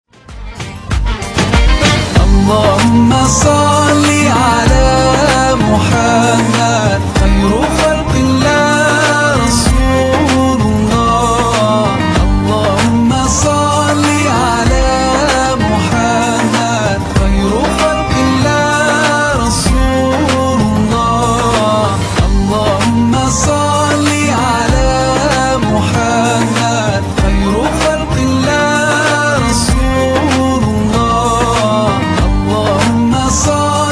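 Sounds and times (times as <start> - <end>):
music: 0.0 - 33.9.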